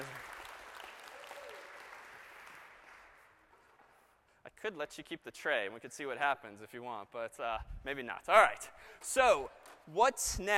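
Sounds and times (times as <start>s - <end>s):
audience applause: 0.0s - 3.3s
speech: 4.6s - 10.5s.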